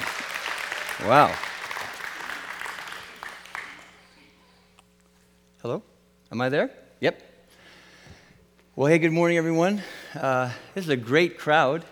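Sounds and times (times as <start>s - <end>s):
audience applause: 0.0s - 4.2s
speech: 1.0s - 1.5s, 5.6s - 7.3s, 8.8s - 11.9s.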